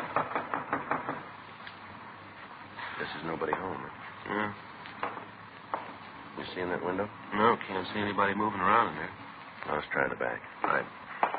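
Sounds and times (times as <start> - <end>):
knocking on the front door of a house: 0.0 - 1.4
speech: 0.2 - 0.4, 3.0 - 5.2, 6.4 - 11.0.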